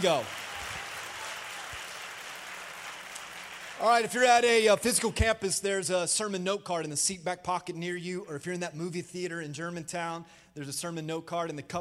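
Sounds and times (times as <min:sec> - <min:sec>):
speech: 0:00.0 - 0:00.4, 0:03.8 - 0:11.7
crowd applause: 0:00.0 - 0:04.2.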